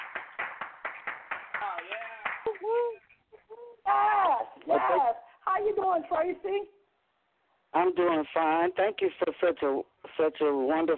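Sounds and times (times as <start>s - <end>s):
audience applause: 0.0s - 2.9s
people whooping and cheering: 2.4s - 3.0s
speech: 4.7s - 6.8s, 7.7s - 10.9s.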